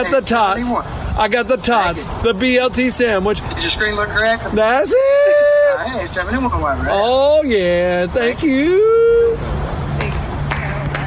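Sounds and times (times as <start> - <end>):
speech: 0.0 - 9.5
idling vehicles rumbling: 0.0 - 11.0
hand claps from a nearby car: 10.0 - 11.0.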